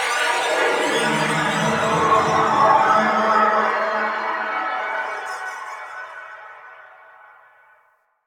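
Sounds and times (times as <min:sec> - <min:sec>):
interior ambience: 0:00.2 - 0:05.2.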